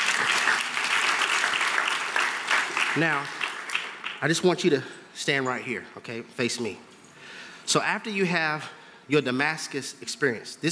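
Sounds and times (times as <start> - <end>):
audience applause: 0.0 - 4.3
speech: 3.0 - 3.4, 4.2 - 6.9, 7.7 - 10.6.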